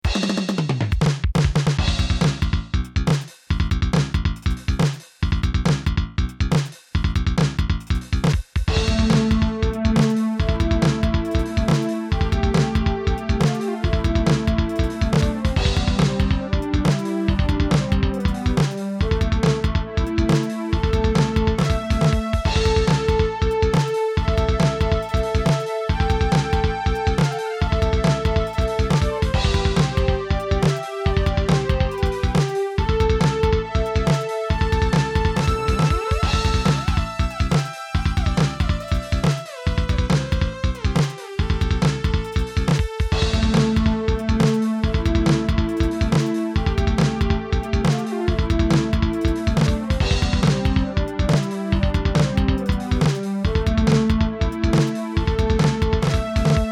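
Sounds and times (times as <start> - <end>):
bass: 0.0 - 56.6.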